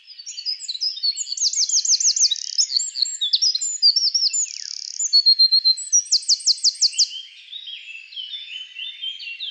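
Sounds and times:
Eurasian wren singing: 0.2s - 9.4s.

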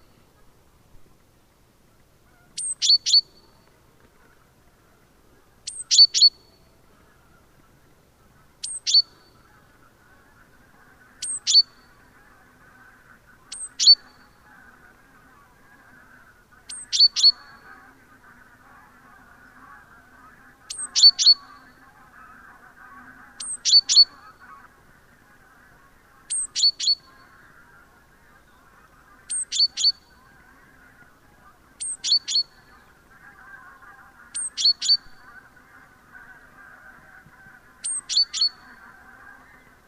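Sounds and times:
great tit calling with high sharp notes: 2.6s - 3.6s, 5.7s - 6.6s, 8.6s - 9.5s, 11.2s - 12.0s, 13.5s - 14.4s, 16.7s - 17.8s, 20.7s - 21.8s, 23.2s - 24.6s, 26.3s - 27.4s, 28.5s - 30.4s, 31.8s - 35.4s, 37.8s - 39.4s.

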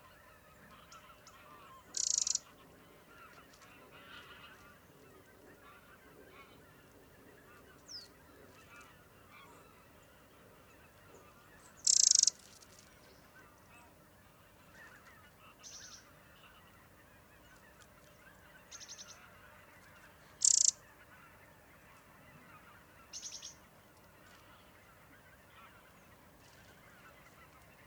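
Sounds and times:
faint birdsong: 0.0s - 27.8s
Eurasian wren rattling: 2.0s - 2.4s, 11.9s - 12.3s, 20.4s - 20.7s
hiss: 2.0s - 2.5s.

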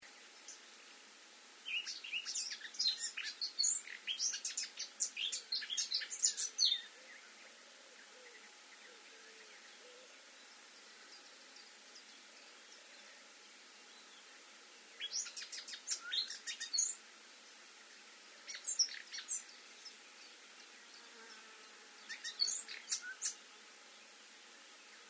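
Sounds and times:
Eurasian blackcap singing: 1.7s - 6.9s, 15.0s - 17.0s, 22.1s - 23.4s.

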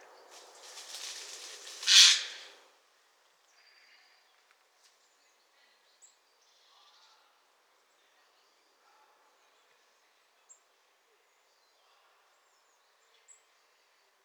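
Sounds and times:
small birds chipping: 0.0s - 2.6s
Eurasian blue tit scolding calls: 1.6s - 2.5s.

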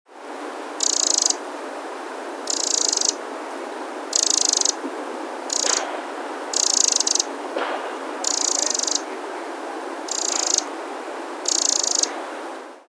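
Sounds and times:
steady background hiss: 0.1s - 12.8s
Eurasian wren rattling calls: 0.8s - 1.4s, 2.4s - 3.2s, 4.1s - 4.8s, 5.5s - 5.9s, 6.5s - 7.3s, 8.2s - 9.1s, 10.1s - 10.7s, 11.4s - 12.1s.

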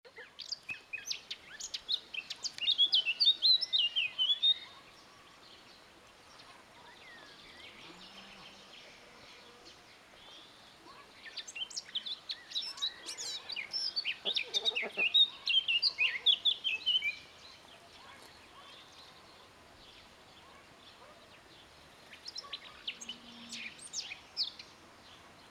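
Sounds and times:
Eurasian blackcap warbling song: 0.3s - 4.8s, 11.2s - 17.6s.

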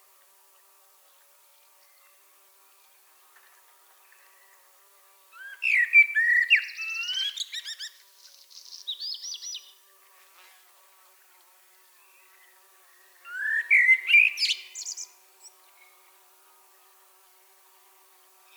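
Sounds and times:
common blackbird warbling fluty song: 5.4s - 9.8s, 12.1s - 16.0s.

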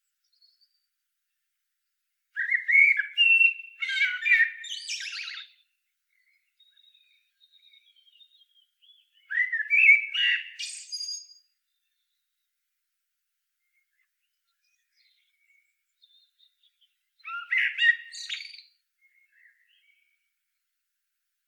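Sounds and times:
Eurasian blackbird singing: 2.4s - 12.5s, 13.7s - 20.2s.

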